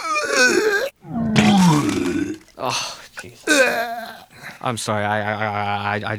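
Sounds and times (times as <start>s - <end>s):
person retching and vomiting: 0.0s - 4.6s
speech: 2.6s - 4.0s, 4.6s - 6.1s.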